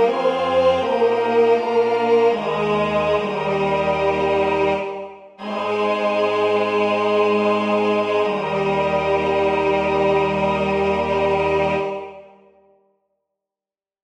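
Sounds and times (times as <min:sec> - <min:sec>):
tenor singing an offertory: 0:00.0 - 0:12.4.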